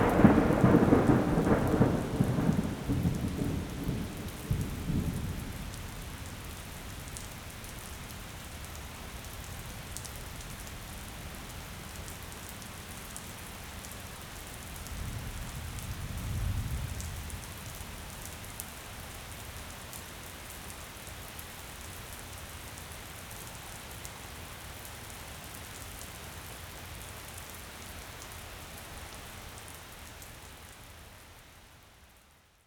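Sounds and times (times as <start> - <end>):
light thunderstorm: 0.0 - 19.6.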